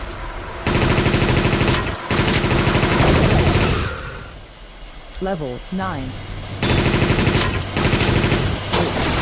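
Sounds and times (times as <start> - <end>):
rapid machine gun fire in a video game: 0.7 - 3.9, 6.6 - 9.1
speech: 5.2 - 6.3.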